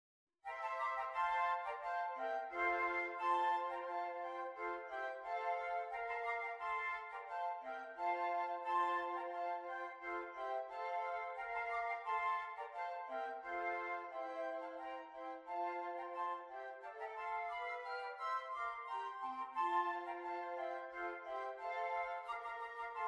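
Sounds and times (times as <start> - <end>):
flute: 0.5 - 23.0.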